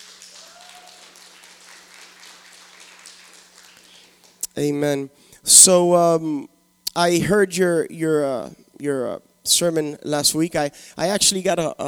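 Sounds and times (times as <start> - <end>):
audience applause: 0.0 - 4.1
speech: 4.6 - 11.8.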